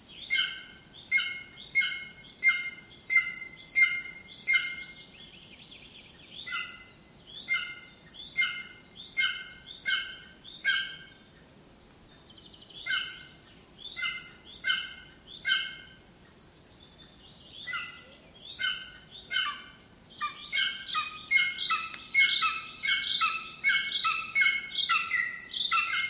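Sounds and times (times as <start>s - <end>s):
bird singing chirp phrases: 0.1s - 26.0s.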